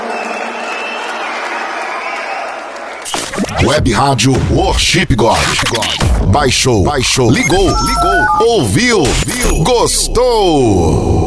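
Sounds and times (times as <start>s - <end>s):
congregation clapping during a worship service: 0.0s - 3.1s
speech: 3.6s - 11.2s.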